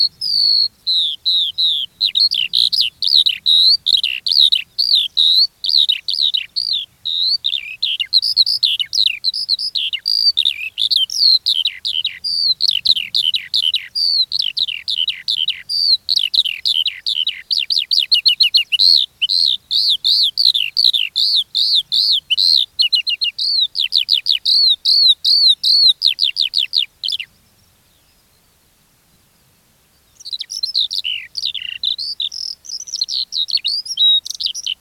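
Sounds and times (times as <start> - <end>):
Eurasian skylark Alauda arvensis singing: 0.0 - 28.5, 29.9 - 34.8.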